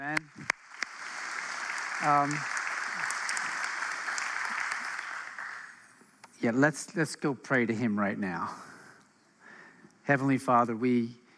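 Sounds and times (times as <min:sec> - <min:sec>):
audience applause: 0:00.0 - 0:06.0
speech: 0:02.0 - 0:02.6, 0:06.4 - 0:08.7, 0:10.1 - 0:11.2.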